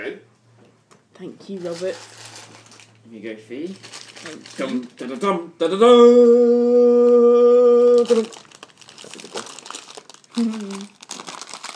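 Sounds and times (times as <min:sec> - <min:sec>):
speech: 0:01.2 - 0:02.3, 0:03.1 - 0:08.4, 0:10.4 - 0:10.8
large bag being opened and crinkling: 0:01.6 - 0:03.0, 0:03.7 - 0:05.2, 0:08.0 - 0:11.7.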